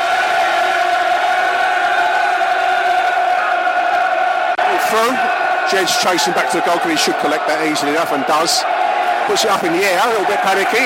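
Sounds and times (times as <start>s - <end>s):
football stadium crowd cheering: 0.0s - 10.8s
speech: 4.9s - 10.8s.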